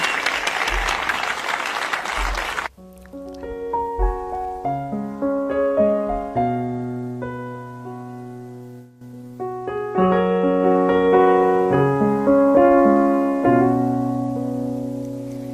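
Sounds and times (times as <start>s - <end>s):
audience applause: 0.0s - 2.7s
slow piano melody with notes and chords: 2.2s - 15.5s.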